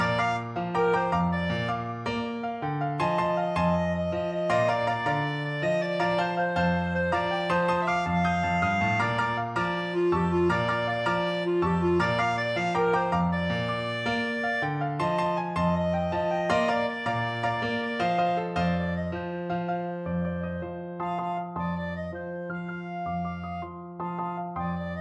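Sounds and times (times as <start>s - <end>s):
salsa music: 0.0s - 18.8s
clarinet: 0.0s - 24.9s.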